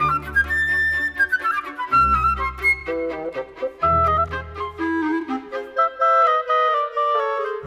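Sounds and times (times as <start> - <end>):
orchestra: 0.0 - 7.6.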